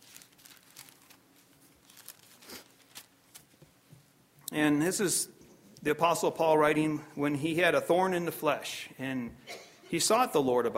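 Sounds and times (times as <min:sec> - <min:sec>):
Bible pages being turned: 0:00.0 - 0:03.7
low hiss: 0:00.0 - 0:10.7
speech: 0:04.5 - 0:10.7.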